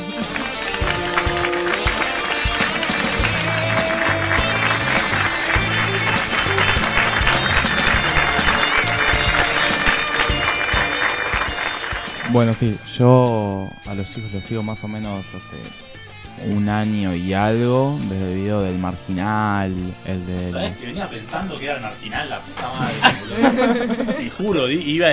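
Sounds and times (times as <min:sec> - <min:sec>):
canned applause sound effect: 0:00.0 - 0:12.8, 0:21.3 - 0:24.3
speech: 0:12.3 - 0:25.1
laughter: 0:22.3 - 0:24.9.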